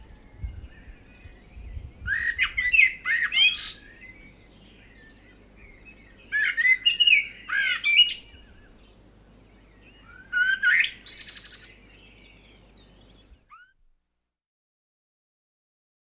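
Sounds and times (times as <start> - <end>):
birds chirping in the countryside in the morning: 0.0 - 13.7.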